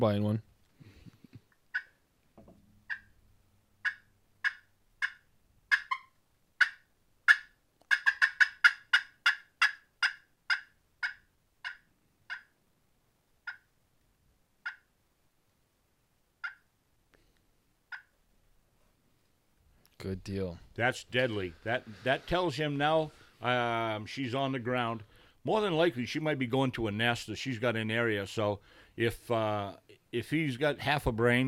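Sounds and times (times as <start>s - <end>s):
speech: 0.0s - 0.5s, 20.0s - 31.4s
slate-over-glass turkey call yelps and clucks: 3.8s - 12.5s, 14.6s - 14.9s, 16.4s - 16.6s.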